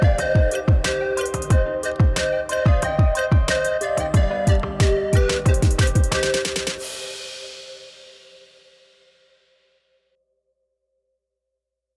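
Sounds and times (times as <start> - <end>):
trap beat: 0.0 - 8.6.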